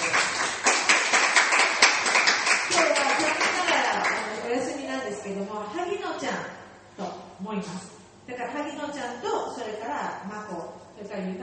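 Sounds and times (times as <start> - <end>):
crowd applause: 0.0 - 4.3
speech: 5.2 - 11.4.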